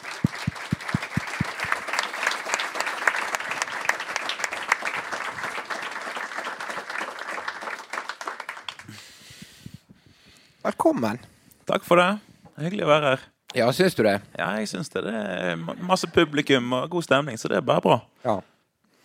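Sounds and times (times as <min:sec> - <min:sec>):
audience applause: 0:00.0 - 0:09.0
speech: 0:10.7 - 0:18.5.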